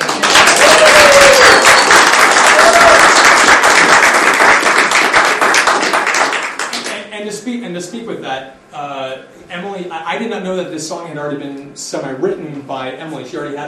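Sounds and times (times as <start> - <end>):
crowd applauding: 0.0 - 6.9
speech: 10.1 - 13.6.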